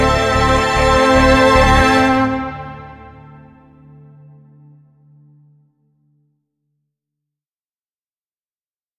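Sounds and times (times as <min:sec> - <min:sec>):
haunting dramatic strings: 0:00.0 - 0:04.8.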